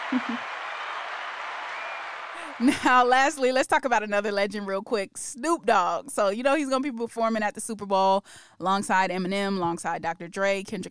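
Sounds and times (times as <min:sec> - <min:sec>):
applause: 0:00.0 - 0:02.9
speech: 0:00.1 - 0:00.6, 0:02.6 - 0:10.8.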